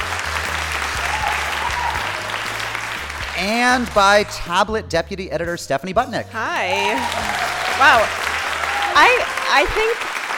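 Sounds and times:
crowd applauding: 0:00.0 - 0:04.6, 0:06.4 - 0:10.3
whoops and cheers: 0:00.8 - 0:02.7, 0:06.6 - 0:10.0
speech: 0:03.4 - 0:08.2, 0:09.0 - 0:10.1.

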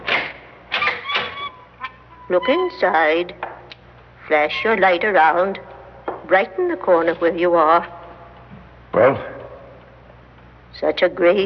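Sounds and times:
parlor door opening: 0:00.0 - 0:03.0
speech: 0:02.3 - 0:03.4, 0:04.3 - 0:05.7, 0:06.3 - 0:08.0, 0:09.0 - 0:09.3, 0:10.8 - 0:11.4.

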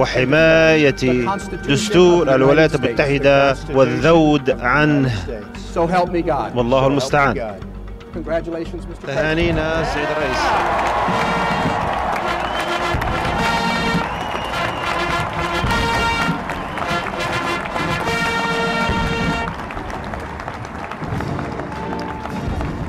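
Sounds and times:
brass band music: 0:00.0 - 0:08.0, 0:09.0 - 0:22.8
speech: 0:00.0 - 0:11.3
crowd applauding and cheering: 0:09.2 - 0:22.8.

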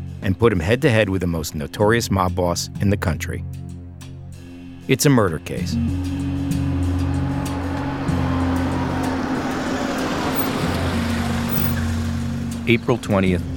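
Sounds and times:
speech: 0:00.2 - 0:03.7, 0:04.9 - 0:06.6, 0:12.7 - 0:13.5
car pulling up to Pannone's Meat Market: 0:05.8 - 0:13.0.

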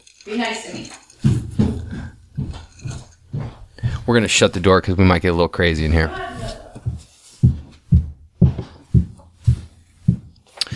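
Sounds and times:
speech: 0:00.2 - 0:01.1, 0:04.1 - 0:06.6
high heels climbing a staircase: 0:01.2 - 0:04.7, 0:05.8 - 0:10.7.

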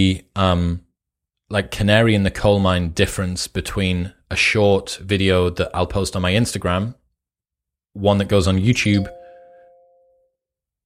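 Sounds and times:
speech: 0:00.0 - 0:00.8, 0:01.5 - 0:07.0, 0:08.0 - 0:09.2
phone notification chime: 0:09.0 - 0:10.3.

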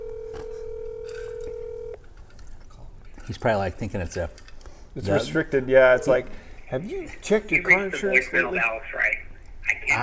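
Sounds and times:
telephone tone of a phone call being dialed: 0:00.0 - 0:02.0
speech: 0:03.3 - 0:09.1.

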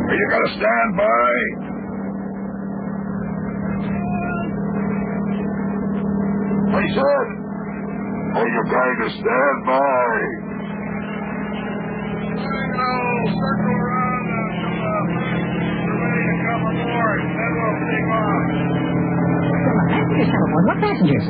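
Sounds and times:
helicopter: 0:00.0 - 0:21.2
speech: 0:00.1 - 0:01.8, 0:06.7 - 0:07.4, 0:08.3 - 0:10.5, 0:12.4 - 0:13.8, 0:16.5 - 0:18.9, 0:19.6 - 0:21.2.

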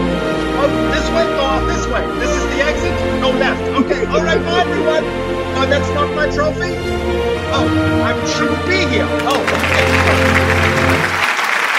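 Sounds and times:
speech: 0:00.6 - 0:11.2
laughter: 0:02.2 - 0:05.1, 0:09.2 - 0:11.4
audience clapping: 0:09.2 - 0:11.7.

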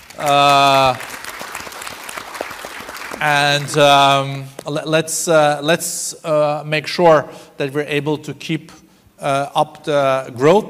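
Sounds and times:
audience applause: 0:00.0 - 0:04.5
speech: 0:00.2 - 0:01.1, 0:03.2 - 0:10.6.

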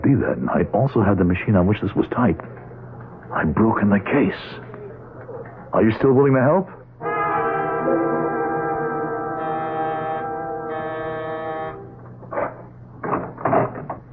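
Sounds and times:
speech: 0:00.1 - 0:02.6, 0:03.3 - 0:04.7, 0:05.7 - 0:06.8
doorbell ringing: 0:07.0 - 0:12.0.

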